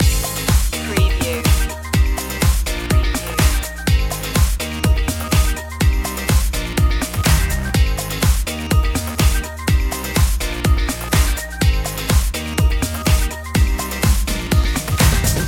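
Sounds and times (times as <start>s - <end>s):
beach dance music loop: 0.0s - 15.4s.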